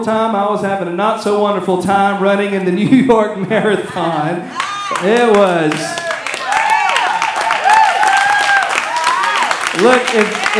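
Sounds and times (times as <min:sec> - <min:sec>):
speech: 0:00.0 - 0:06.0, 0:09.8 - 0:10.5
audience clapping: 0:00.0 - 0:10.5
laughter: 0:00.0 - 0:10.5
whoops and cheering voices: 0:03.9 - 0:10.5.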